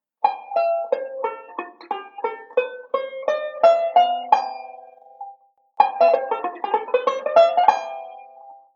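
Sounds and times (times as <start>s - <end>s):
banjo playing a modal sequence: 0.0s - 8.7s.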